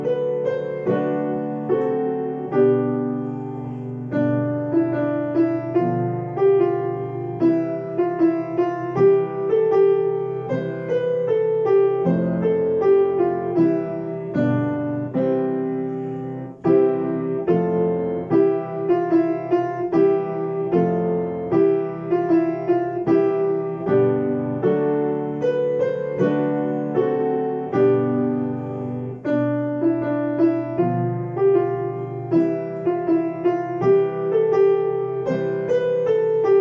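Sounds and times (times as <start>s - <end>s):
piano: 0.0s - 36.5s.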